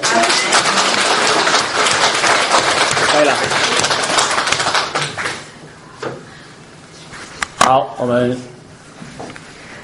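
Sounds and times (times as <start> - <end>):
church congregation clapping their hands in praise of God: 0.0 - 5.5
speech: 3.2 - 3.6, 7.7 - 8.5.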